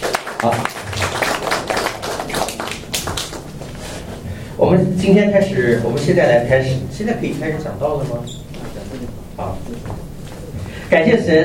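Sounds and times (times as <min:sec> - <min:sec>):
audience applause: 0:00.0 - 0:04.0
speech: 0:00.4 - 0:00.8, 0:04.7 - 0:08.5, 0:10.9 - 0:11.4.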